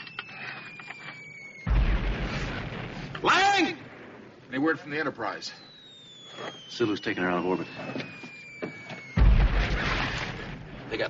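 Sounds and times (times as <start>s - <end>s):
grenade launcher firing and exploding: 1.6s - 4.2s, 9.1s - 11.0s
speech: 3.2s - 3.8s, 4.5s - 5.7s, 6.4s - 8.2s.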